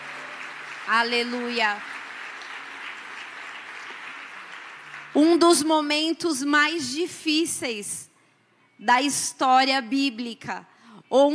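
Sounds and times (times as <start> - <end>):
audience applause: 0.0 - 5.2
speech: 0.9 - 2.0, 5.2 - 8.1, 8.8 - 11.3.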